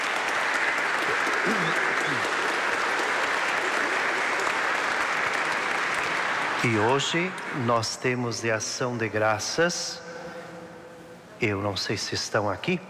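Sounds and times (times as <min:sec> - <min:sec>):
audience applause: 0:00.0 - 0:07.6
speech: 0:06.6 - 0:10.0, 0:11.4 - 0:12.8.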